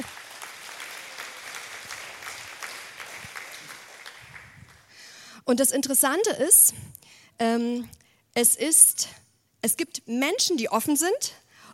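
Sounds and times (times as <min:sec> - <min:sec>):
audience applause: 0:00.0 - 0:05.0
speech: 0:05.5 - 0:11.7.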